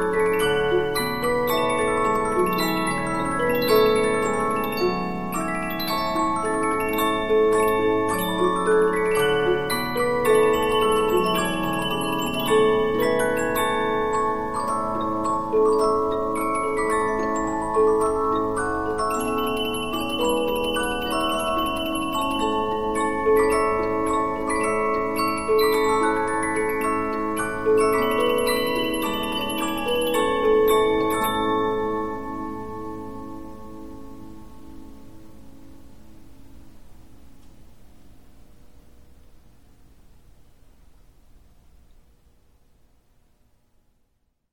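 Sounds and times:
15-inch Polyphon music box playing: 0:00.0 - 0:35.4.

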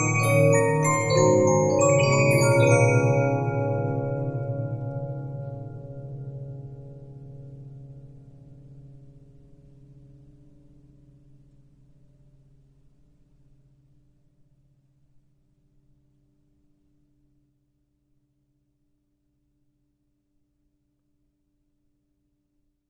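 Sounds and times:
music box melody: 0:00.0 - 0:04.9.

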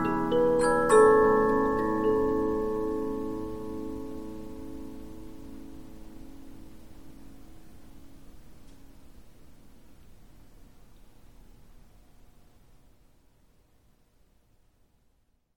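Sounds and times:
Polyphon 15-inch disc music box playing: 0:00.0 - 0:04.9.

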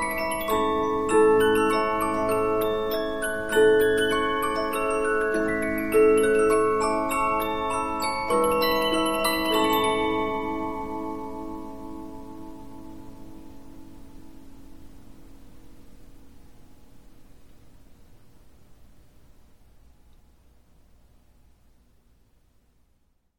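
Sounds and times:
15-inch Polyphon music box: 0:00.0 - 0:16.3.

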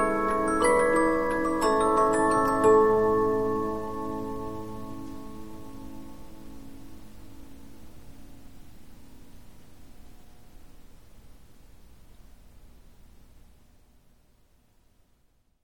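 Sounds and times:
Polyphon 15-inch disc music box playing: 0:00.0 - 0:06.0.

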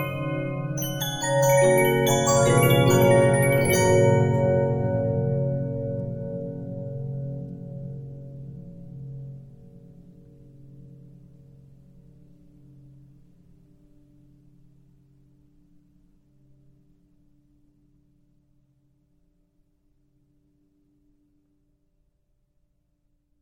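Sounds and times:
Regina 15-inch disc music box: 0:00.0 - 0:06.2.

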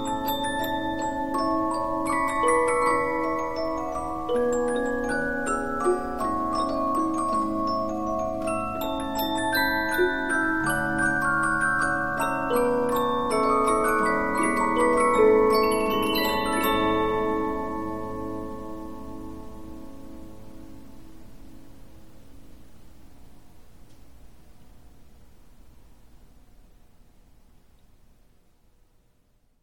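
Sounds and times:
15-inch Polyphon music box playing: 0:00.0 - 0:20.0.

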